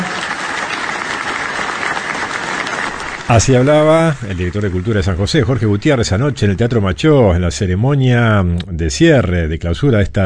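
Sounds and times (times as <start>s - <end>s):
audience applause in a theatre in San José at a book fair closing ceremony: 0.0s - 6.7s
speech: 3.3s - 10.2s.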